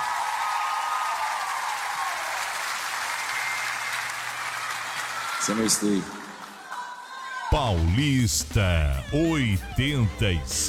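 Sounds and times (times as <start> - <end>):
audience applause for a performer at the close of a show: 0.0 - 8.2
speech: 5.4 - 6.2, 7.5 - 10.6.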